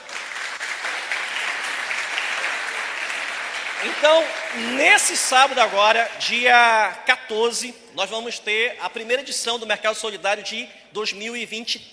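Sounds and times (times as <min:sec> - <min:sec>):
audience applause: 0:00.0 - 0:06.2
speech: 0:03.8 - 0:11.9.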